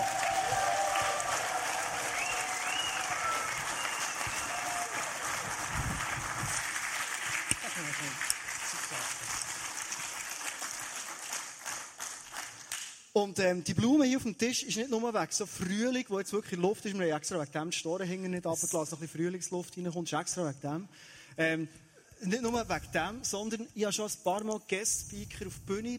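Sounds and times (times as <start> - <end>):
thunderous applause from a large crowd: 0.0 - 11.6
speech: 13.2 - 25.9.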